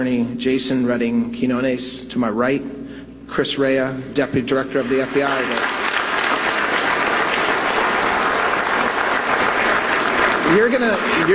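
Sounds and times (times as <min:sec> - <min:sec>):
speech: 0:00.0 - 0:05.9, 0:10.5 - 0:11.3
audience applause: 0:04.8 - 0:11.3.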